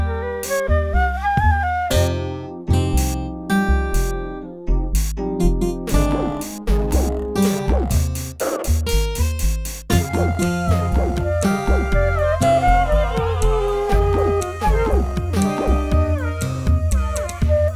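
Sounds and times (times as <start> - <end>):
flute: 0.0 - 3.2, 9.9 - 17.7
metronome: 0.4 - 0.7, 1.9 - 3.3, 4.0 - 4.3, 5.0 - 12.1.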